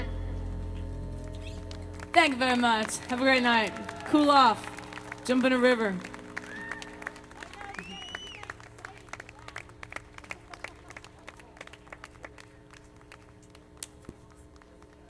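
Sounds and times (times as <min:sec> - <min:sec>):
audience applause: 0:01.2 - 0:15.0
speech: 0:02.3 - 0:06.1
whistles and cheers: 0:06.3 - 0:08.6.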